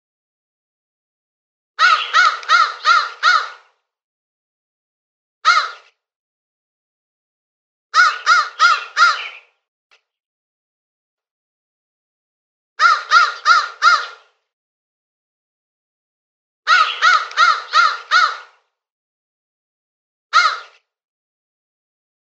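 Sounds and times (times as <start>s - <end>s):
crow uttering rasping caws: 1.8s - 3.7s, 5.4s - 5.9s, 7.9s - 9.4s, 12.8s - 14.3s, 16.7s - 18.6s, 20.3s - 20.8s.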